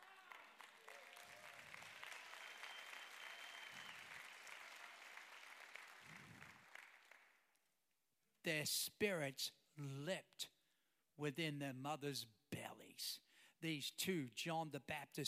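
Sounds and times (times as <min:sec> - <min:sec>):
weak clapping from audience: 0:00.0 - 0:07.6
speech: 0:08.4 - 0:10.5, 0:11.2 - 0:15.2.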